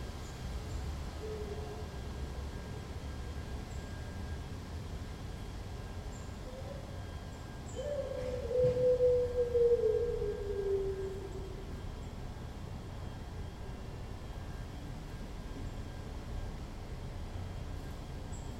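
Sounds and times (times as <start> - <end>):
steady hum of city background noise: 0.0 - 18.5
dog howling: 7.8 - 11.6.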